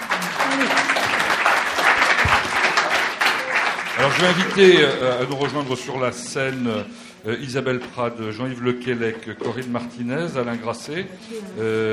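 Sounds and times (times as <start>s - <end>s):
audience applause: 0.0s - 5.8s
speech: 4.0s - 11.9s.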